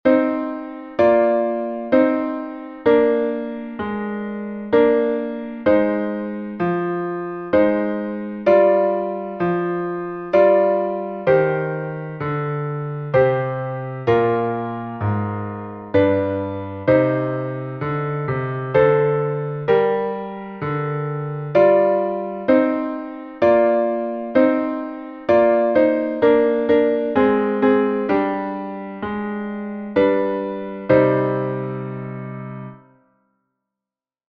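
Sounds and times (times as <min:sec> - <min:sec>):
vocal intonation exercise with piano: 0:00.0 - 0:32.8.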